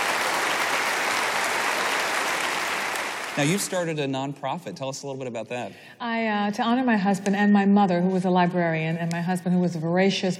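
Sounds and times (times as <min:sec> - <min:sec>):
audience applause welcoming a guest: 0:00.0 - 0:04.0
speech: 0:03.4 - 0:10.3.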